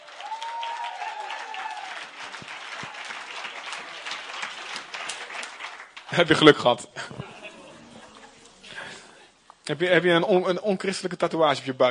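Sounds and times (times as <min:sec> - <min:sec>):
audience applause: 0:00.0 - 0:06.6
speech: 0:06.1 - 0:07.3, 0:09.7 - 0:11.8
laughter: 0:07.0 - 0:09.2.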